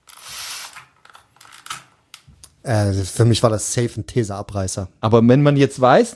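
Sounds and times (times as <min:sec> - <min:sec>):
spray bottle trigger squeezed, spraying: 0:00.1 - 0:00.8
speech: 0:02.6 - 0:06.1.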